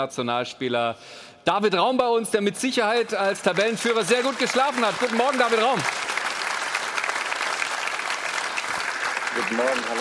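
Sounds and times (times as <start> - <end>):
speech: 0.0 - 6.2, 9.4 - 10.0
studio audience applause welcoming a guest: 2.9 - 10.0.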